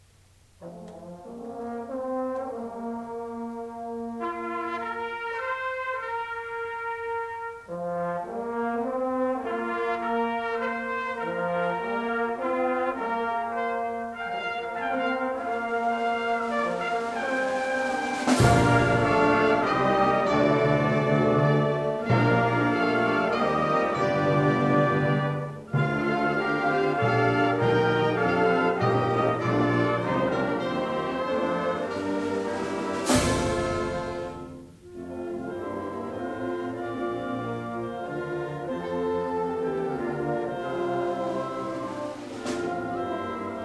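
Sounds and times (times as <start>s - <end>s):
wind band flourish: 0.6s - 43.6s.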